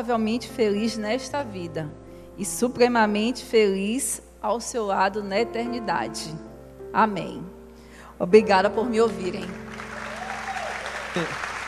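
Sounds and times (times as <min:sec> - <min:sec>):
speech: 0:00.0 - 0:07.6, 0:08.2 - 0:09.6, 0:11.2 - 0:11.5
audience applause: 0:09.6 - 0:11.6.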